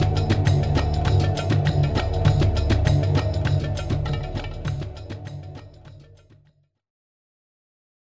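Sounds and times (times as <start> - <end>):
oasis ambience: 0.0 - 5.9.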